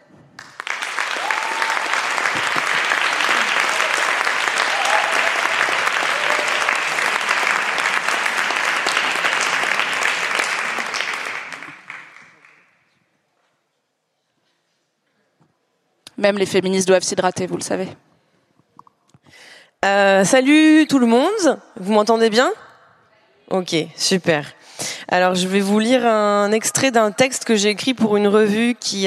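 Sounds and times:
audience applause: 0:00.4 - 0:12.7
speech: 0:16.2 - 0:18.1, 0:19.8 - 0:22.6, 0:23.5 - 0:29.0.

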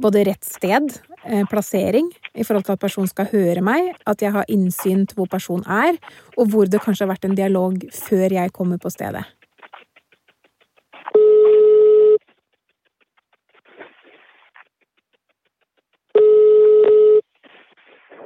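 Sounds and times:
speech: 0:00.0 - 0:09.4
telephone ringing unanswered: 0:11.2 - 0:12.2, 0:16.2 - 0:17.2.

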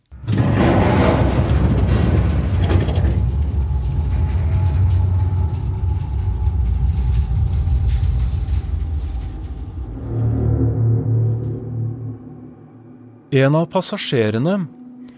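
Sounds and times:
crash on a ship: 0:00.0 - 0:13.2
ship shaking and rumbling: 0:00.1 - 0:12.0
speech: 0:13.3 - 0:14.8.

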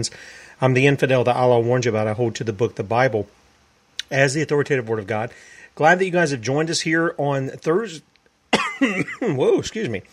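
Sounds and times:
speech: 0:00.0 - 0:03.4, 0:04.1 - 0:08.1, 0:08.8 - 0:10.1
talk-show host coughing and clearing throat on the mic: 0:08.5 - 0:09.4.

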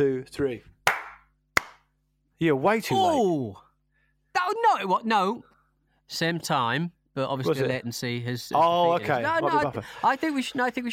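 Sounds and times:
speech: 0:00.0 - 0:00.8, 0:02.4 - 0:03.6, 0:04.4 - 0:05.5, 0:06.1 - 0:10.9
two people clapping hands: 0:00.8 - 0:01.9.

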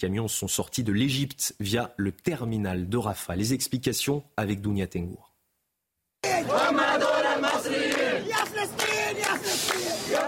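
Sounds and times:
speech: 0:00.0 - 0:05.3
volunteers chanting slogans at border crossing: 0:06.2 - 0:10.2.

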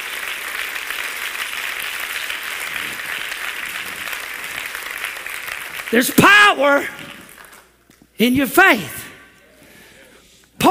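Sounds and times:
audience clapping hands: 0:00.0 - 0:08.1
speech: 0:05.9 - 0:07.2, 0:08.2 - 0:09.0.

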